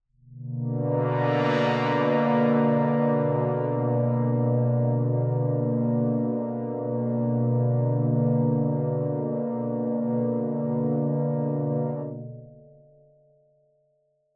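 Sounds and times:
dystopian drone one-shot in B: 1.0s - 12.2s.

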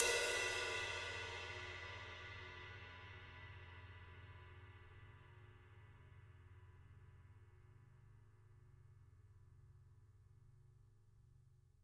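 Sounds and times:
ride cymbal: 0.0s - 3.6s.

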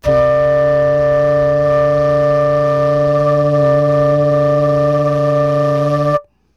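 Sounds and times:
flute hum: 0.0s - 6.3s.

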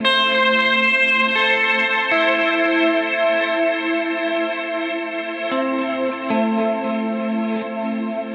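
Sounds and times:
guitar playing at 115 bpm: 0.0s - 8.3s.

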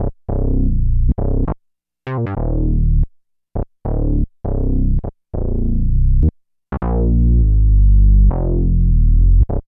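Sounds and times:
bass: 0.0s - 9.7s.

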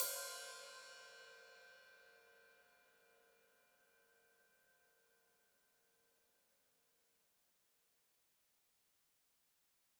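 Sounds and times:
open hi-hat: 0.0s - 1.1s.

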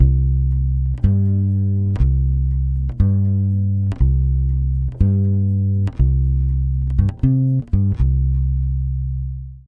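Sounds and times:
Brazilian bossa nova bass in C minor at 120 BPM: 0.0s - 9.6s.

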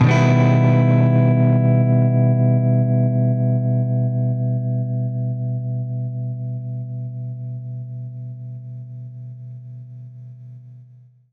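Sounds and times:
baritone guitar E minor major seventh chord: 0.0s - 5.5s.

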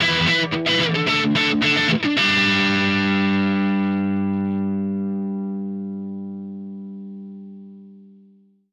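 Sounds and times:
indie rock guitar ending: 0.0s - 6.4s.

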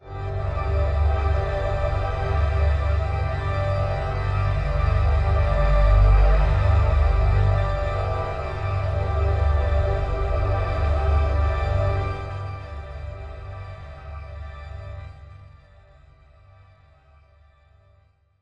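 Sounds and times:
one-shot dystopian drone in G: 0.1s - 14.4s.

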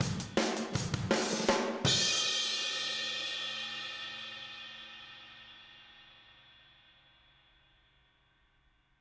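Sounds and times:
drums outro: 0.0s - 3.1s.

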